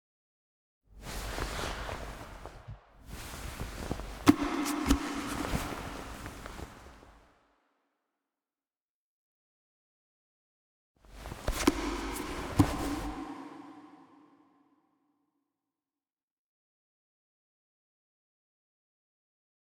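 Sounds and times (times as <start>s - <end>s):
operator picking up a helmet: 1.4s - 7.0s, 11.2s - 13.6s.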